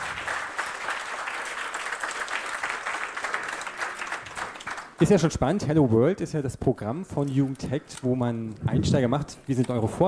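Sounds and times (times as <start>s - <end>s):
audience applause: 0.0s - 5.0s
speech: 5.0s - 10.0s.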